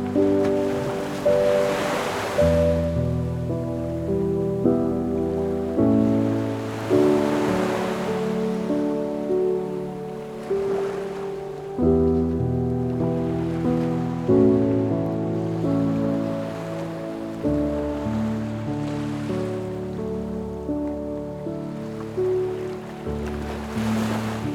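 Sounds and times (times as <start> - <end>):
relaxing ocean piano music: 0.0 - 24.5.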